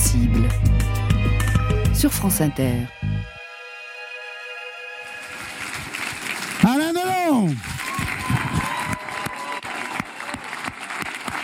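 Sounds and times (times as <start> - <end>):
speech: 0.2 - 0.7, 2.0 - 3.3, 7.4 - 8.1
audience applauding in a large room: 5.0 - 11.4.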